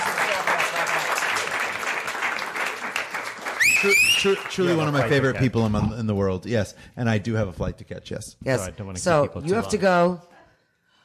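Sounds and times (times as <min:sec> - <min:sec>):
audience applause: 0:00.0 - 0:05.4
speech: 0:03.8 - 0:10.3.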